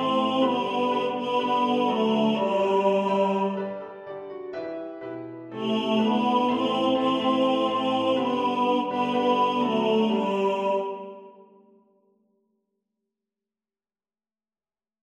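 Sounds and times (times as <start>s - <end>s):
tenor singing in the foreground: 0.0s - 3.8s, 5.5s - 11.6s
piano: 0.0s - 11.8s.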